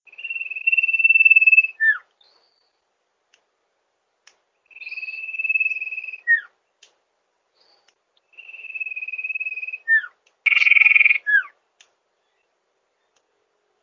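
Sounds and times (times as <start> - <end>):
bird song used for training songbirds: 0.0 - 3.0, 4.6 - 6.6, 7.5 - 13.4.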